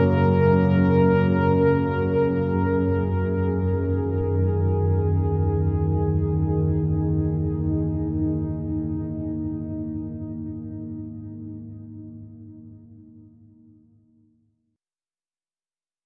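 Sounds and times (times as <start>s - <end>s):
melodic FM synthesizer: 0.0s - 13.7s.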